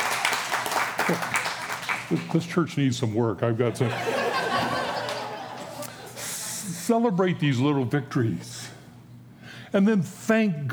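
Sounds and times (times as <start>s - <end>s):
audience applause: 0.0s - 2.4s, 4.2s - 5.9s
speech: 1.1s - 1.3s, 2.1s - 4.8s, 6.9s - 8.8s, 9.7s - 10.7s
laughter: 3.6s - 6.8s.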